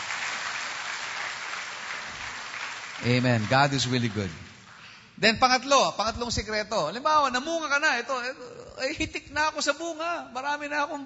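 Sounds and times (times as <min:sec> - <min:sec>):
audience applause: 0:00.0 - 0:05.0
speech: 0:03.0 - 0:04.5, 0:05.2 - 0:11.0.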